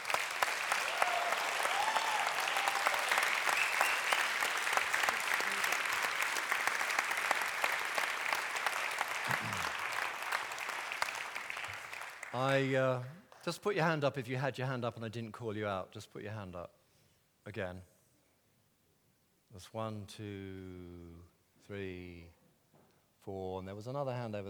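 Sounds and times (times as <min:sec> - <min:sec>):
audience applause: 0:00.0 - 0:12.8
speech: 0:12.4 - 0:16.8, 0:17.5 - 0:17.9, 0:19.6 - 0:22.4, 0:23.2 - 0:24.4.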